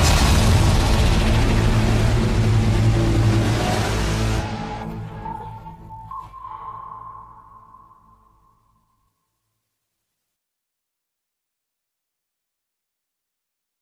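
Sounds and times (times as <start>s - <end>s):
phantom distortion: 0.0s - 10.3s.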